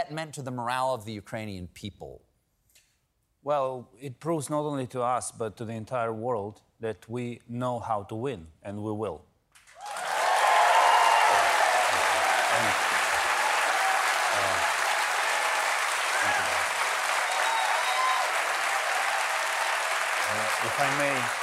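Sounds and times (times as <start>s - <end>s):
speech: 0.0s - 2.3s, 3.4s - 9.3s
audience applause: 9.7s - 21.4s.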